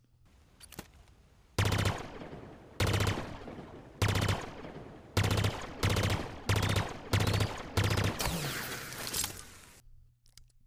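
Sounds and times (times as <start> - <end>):
video game pulse carbine firing bursts: 1.6 - 9.0.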